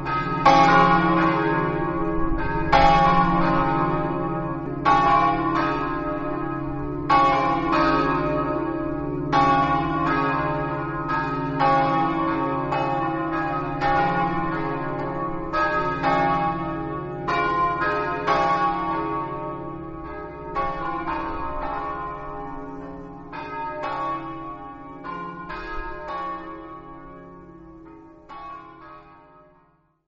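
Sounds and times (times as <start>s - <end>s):
bells ringing in Basaldella: 0.0s - 29.5s.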